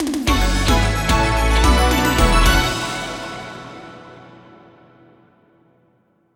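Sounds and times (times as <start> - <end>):
large win jingle: 0.3 - 5.0.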